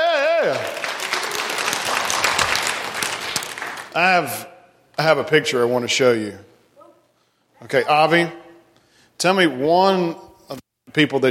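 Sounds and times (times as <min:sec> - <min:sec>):
audience applause: 0:00.3 - 0:04.0
speech: 0:00.4 - 0:00.8, 0:04.0 - 0:06.5, 0:07.6 - 0:08.4, 0:09.2 - 0:11.2.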